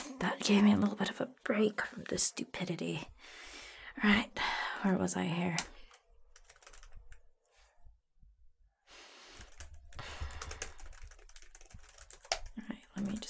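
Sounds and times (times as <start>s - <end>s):
speech: 0.2s - 5.7s
typing a note on a computer keyboard: 5.5s - 7.2s, 9.3s - 13.2s.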